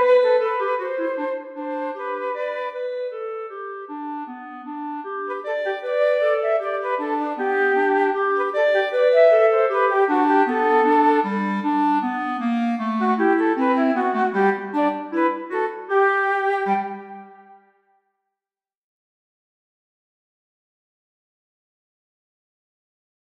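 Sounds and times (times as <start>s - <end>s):
clarinet: 0.0s - 17.8s
flute: 0.0s - 17.8s.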